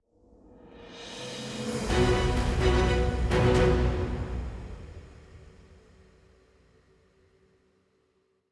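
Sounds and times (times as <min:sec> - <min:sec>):
in-game match over background music: 0:01.9 - 0:05.2.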